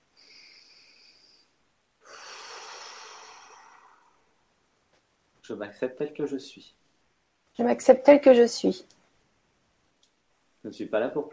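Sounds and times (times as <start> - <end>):
deep breath: 0.0 - 4.5
speech: 5.5 - 6.8, 7.6 - 9.0, 10.6 - 11.3.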